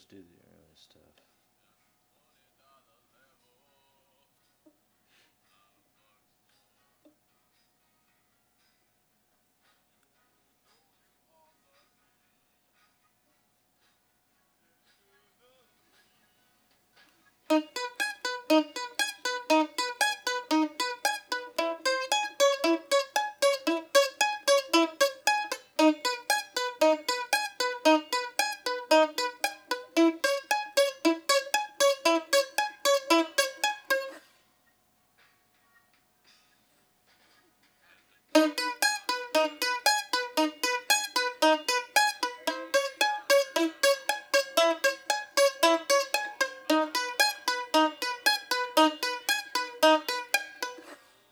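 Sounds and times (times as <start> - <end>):
mandolin: 17.5 - 34.3, 38.4 - 51.1.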